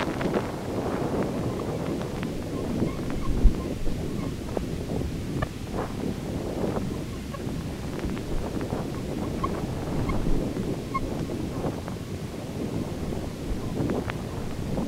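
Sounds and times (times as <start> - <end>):
insect swarm buzzing: 0.0 - 14.8.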